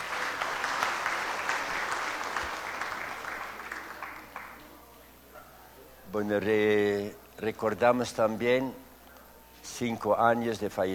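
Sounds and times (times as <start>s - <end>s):
applause: 0.0s - 4.7s
speech: 6.1s - 8.8s, 9.6s - 10.9s.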